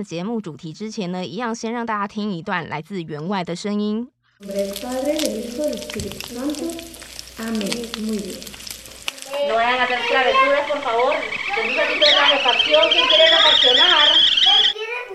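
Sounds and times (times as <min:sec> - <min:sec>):
speech: 0:00.0 - 0:08.6, 0:09.4 - 0:14.4
food sizzling and crackling in a pan: 0:04.4 - 0:14.7.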